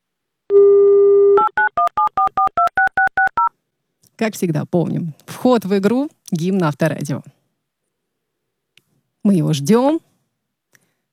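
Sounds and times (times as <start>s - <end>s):
telephone dial tone: 0.5s - 3.4s
speech: 4.2s - 7.4s, 9.2s - 10.1s.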